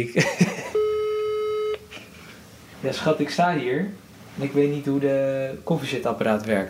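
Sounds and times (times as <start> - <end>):
speech: 0.0 - 0.6, 2.8 - 6.6
laughter: 0.0 - 0.8
telephone ringing tone, steady low-pitched buzzy tone: 0.8 - 1.8
faint rustling: 1.9 - 6.6.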